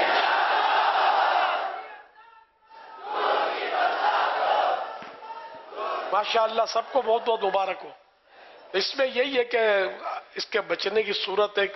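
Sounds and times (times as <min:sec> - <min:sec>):
crowd chanting a slogan at a religious birthday celebration: 0:00.0 - 0:02.1, 0:02.7 - 0:06.3
speech: 0:06.1 - 0:08.0, 0:08.7 - 0:11.7.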